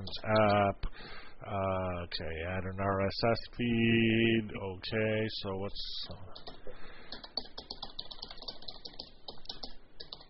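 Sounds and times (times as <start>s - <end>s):
speech: 0.1s - 6.9s
two-finger typing on a computer keyboard: 6.4s - 10.2s.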